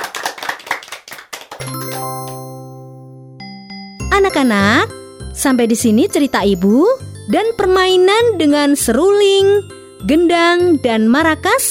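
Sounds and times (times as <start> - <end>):
hands clapping for children: 0.0 - 2.8
bright chime ringing: 1.6 - 8.9
speech: 4.2 - 11.6.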